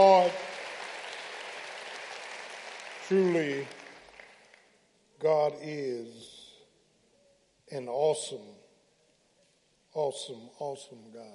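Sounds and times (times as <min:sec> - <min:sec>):
crowd applause for the choir: 0:00.0 - 0:04.6
speech: 0:03.1 - 0:03.8, 0:05.2 - 0:06.4, 0:07.7 - 0:08.6, 0:10.0 - 0:11.3.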